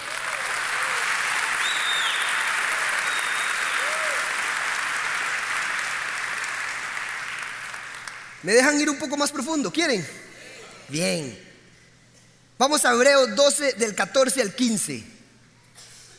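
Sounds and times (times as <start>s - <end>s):
audience applause: 0.0s - 8.4s
faint cheers: 0.1s - 4.5s
speech: 8.4s - 10.2s, 10.9s - 11.5s, 12.6s - 15.1s.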